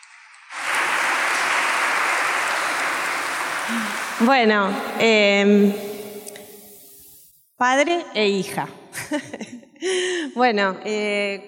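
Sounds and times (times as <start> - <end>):
audience applause: 0.0 - 5.0
speech: 3.7 - 5.9, 7.6 - 11.4.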